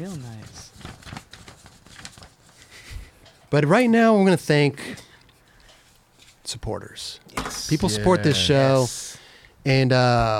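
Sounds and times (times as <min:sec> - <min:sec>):
paper notes being shuffled and handled: 0:00.0 - 0:03.2
speech: 0:03.5 - 0:05.0, 0:06.6 - 0:10.3.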